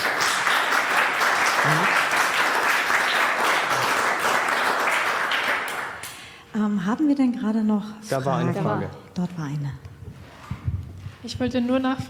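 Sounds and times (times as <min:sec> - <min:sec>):
audience applause: 0:00.0 - 0:06.2
speech: 0:07.0 - 0:09.9, 0:11.2 - 0:12.0.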